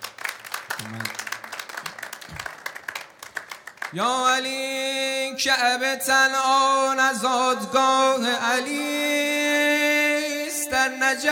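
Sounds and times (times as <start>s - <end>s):
audience clapping: 0.0s - 4.2s
speech: 0.8s - 1.2s, 3.9s - 11.2s.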